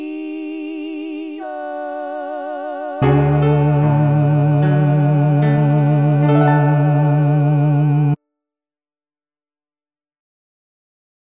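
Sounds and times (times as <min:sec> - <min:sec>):
bass: 0:03.0 - 0:08.2.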